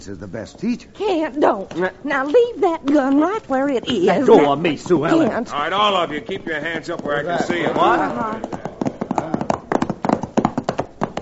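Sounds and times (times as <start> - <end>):
speech: 0.0 - 8.6
horse hooves clip-clopping: 0.4 - 11.2.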